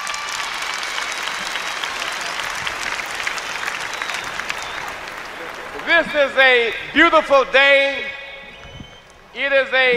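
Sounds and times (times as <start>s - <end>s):
audience applause: 0.0s - 6.9s
speech: 5.9s - 8.1s, 9.4s - 9.9s.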